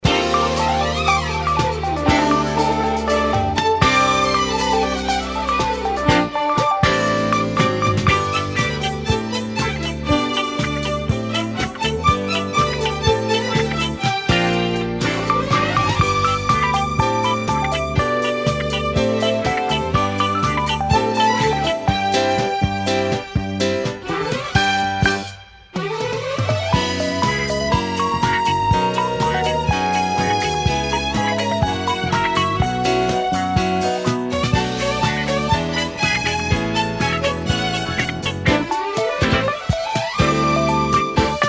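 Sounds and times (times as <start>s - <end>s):
christmas instrumental music: 0.0s - 41.4s.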